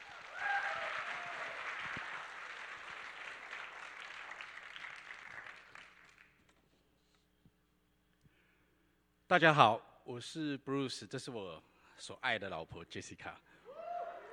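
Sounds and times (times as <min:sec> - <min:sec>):
audience applause: 0:00.0 - 0:06.3
speech: 0:09.3 - 0:13.5.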